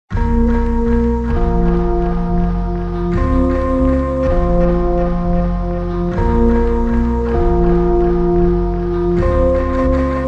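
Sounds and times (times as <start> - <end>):
slowed reverb music: 0.1 - 10.2.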